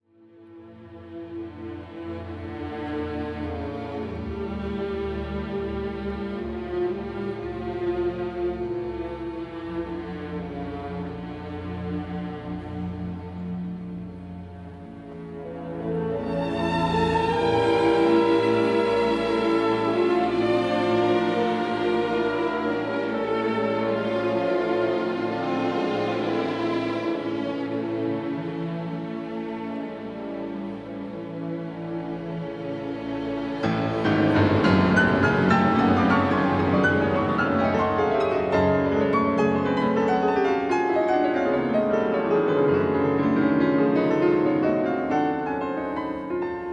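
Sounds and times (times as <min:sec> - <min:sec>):
piano concerto adagio: 0:00.6 - 0:46.7.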